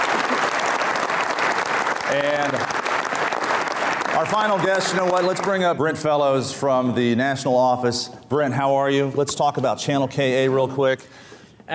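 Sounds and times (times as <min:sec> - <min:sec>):
crowd applause: 0:00.0 - 0:05.8
speech: 0:02.1 - 0:02.8, 0:04.2 - 0:11.7.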